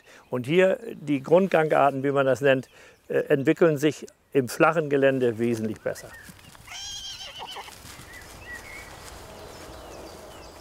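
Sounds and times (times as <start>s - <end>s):
quieter outdoor background: 0.0s - 10.6s
speech: 0.3s - 6.4s
mare and newborn colt foal neighing on a summer pasture: 6.7s - 7.8s.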